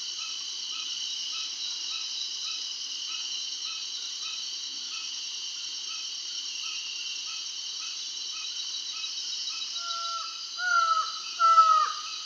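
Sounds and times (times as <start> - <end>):
Slaty-backed Forest-Falcon Micrastur mirandollei calling in Peru: 9.8 - 12.2.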